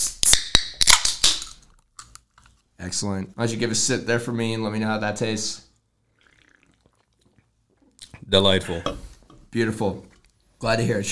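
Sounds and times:
drink cans being cracked open: 0.0 - 2.3
speech: 2.8 - 5.6, 8.3 - 11.1.

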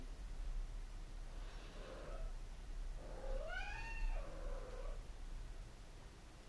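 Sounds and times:
low steady hiss: 0.0 - 6.4
cat meowing: 3.0 - 5.0.

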